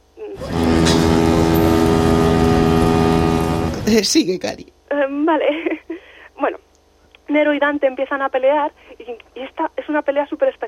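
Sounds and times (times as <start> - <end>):
loud sustained brassy multi-tone horn blast: 0.4 - 4.1
speech: 3.9 - 5.8, 7.3 - 10.6.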